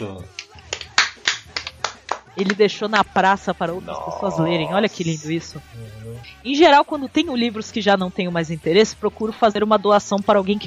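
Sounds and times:
speech: 0.0 - 0.5, 2.4 - 10.6
hand claps: 0.2 - 2.8.

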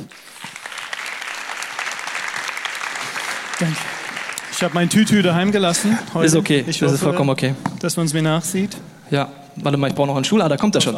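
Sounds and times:
audience clapping: 0.0 - 6.1
speech: 3.6 - 10.9.

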